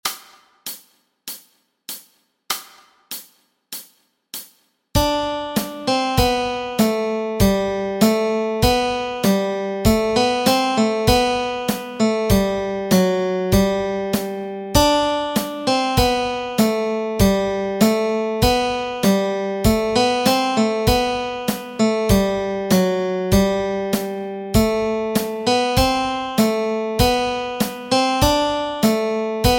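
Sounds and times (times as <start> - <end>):
guitar: 5.0 - 29.5.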